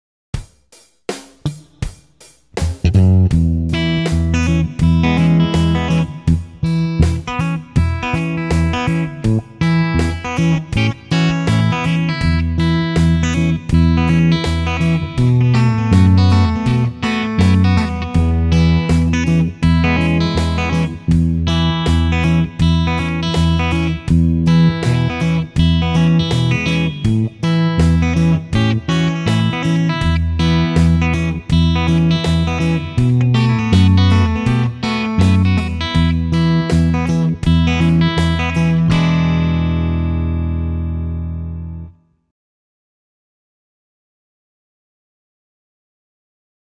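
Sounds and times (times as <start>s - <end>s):
rhythm guitar: 0.4s - 42.0s.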